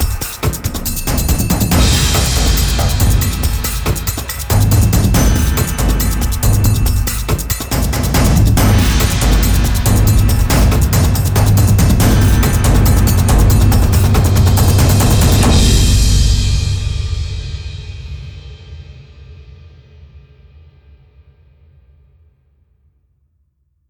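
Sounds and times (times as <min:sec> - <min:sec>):
tribal percussion: 0:00.0 - 0:19.0.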